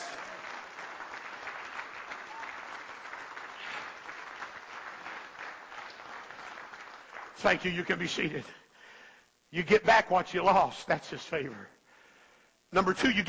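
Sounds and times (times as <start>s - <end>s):
audience applauding: 0.0s - 8.4s
speech: 7.4s - 8.6s, 9.5s - 11.8s, 12.7s - 13.2s.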